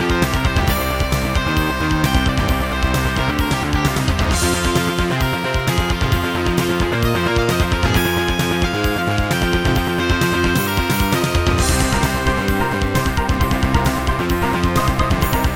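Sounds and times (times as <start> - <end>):
Roland SC-55 sound module music: 0.0 - 15.5.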